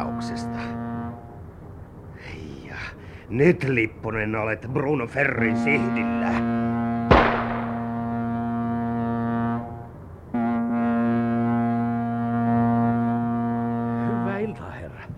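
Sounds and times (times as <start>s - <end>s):
ship's horn blowing: 0.0s - 1.7s, 5.1s - 15.1s
speech: 3.3s - 6.5s.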